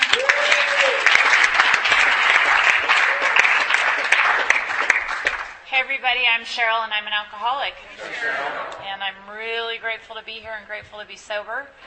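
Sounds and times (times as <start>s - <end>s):
audience applause at a sobriety meeting: 0.0s - 5.6s
speech: 6.1s - 11.8s.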